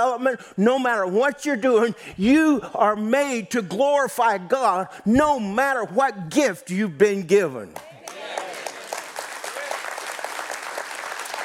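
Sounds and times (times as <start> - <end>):
speech: 0.0 - 8.4
audience clapping: 7.7 - 11.4.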